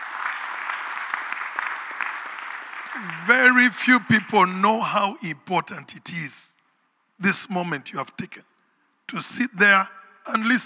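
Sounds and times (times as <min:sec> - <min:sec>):
round of applause from a crowd: 0:00.0 - 0:04.2
speech: 0:03.0 - 0:06.5, 0:07.2 - 0:08.5, 0:09.1 - 0:10.6.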